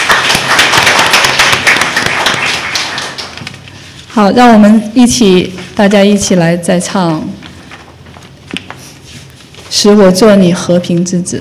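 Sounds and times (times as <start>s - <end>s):
audience applause: 0.0s - 3.5s
speech: 4.2s - 7.4s, 9.7s - 11.3s.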